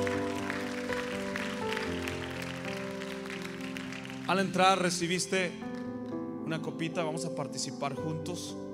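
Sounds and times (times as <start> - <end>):
audience applause: 0.0 - 4.8
speech: 4.3 - 5.7, 6.5 - 8.6.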